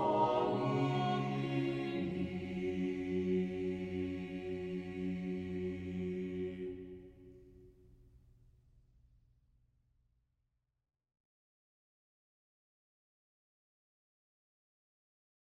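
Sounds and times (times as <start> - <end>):
SATB four-part choir singing: 0.0 - 7.3.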